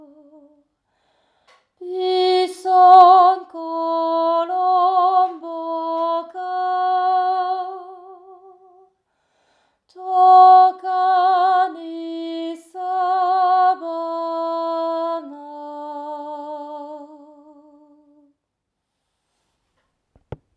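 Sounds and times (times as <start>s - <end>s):
soprano voice: 0.0s - 0.6s, 1.8s - 8.9s, 9.9s - 18.3s.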